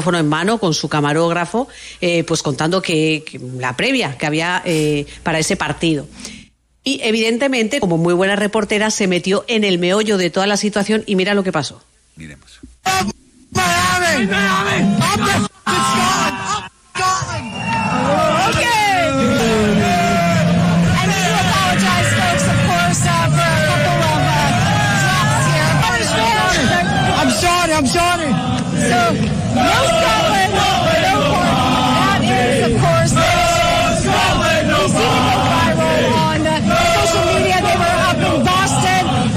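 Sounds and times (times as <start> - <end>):
speech: 0.0 - 19.8, 27.4 - 30.3
rowdy crowd cheering and shouting: 13.8 - 39.3.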